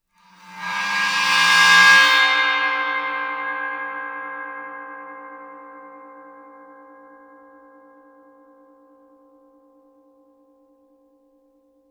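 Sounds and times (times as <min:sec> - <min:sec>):
suspended cymbal bowed with Chinese bow: 0:00.2 - 0:05.3.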